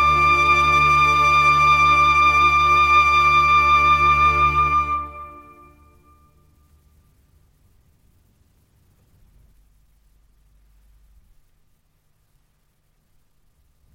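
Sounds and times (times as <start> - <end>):
trumpet concerto: 0.0 - 6.2.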